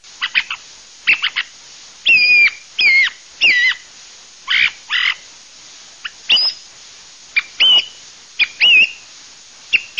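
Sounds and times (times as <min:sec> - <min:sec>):
thrush harsh and whistled calls: 0:00.2 - 0:03.9, 0:04.5 - 0:05.3, 0:06.0 - 0:06.7, 0:07.4 - 0:09.1, 0:09.7 - 0:09.9.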